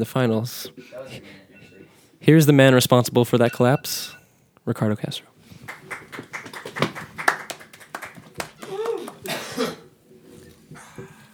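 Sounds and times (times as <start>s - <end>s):
speech: 0.0s - 1.4s, 2.2s - 5.3s
audience clapping: 5.6s - 9.5s.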